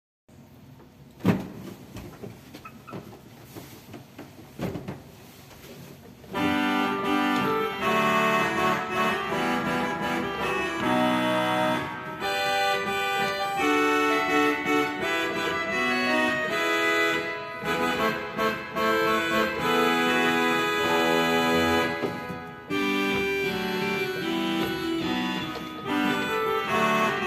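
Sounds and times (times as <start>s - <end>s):
dulcian regal organ stop: 6.3s - 27.2s.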